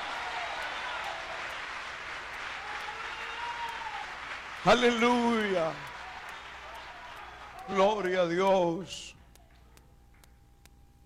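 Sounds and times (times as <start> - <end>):
audience applauding: 0.0 - 8.8
speech: 4.6 - 5.9, 7.7 - 9.2.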